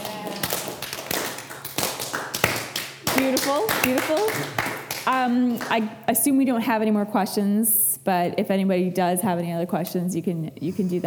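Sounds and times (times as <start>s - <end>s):
slow clap: 0.0s - 5.8s
speech: 3.2s - 11.0s.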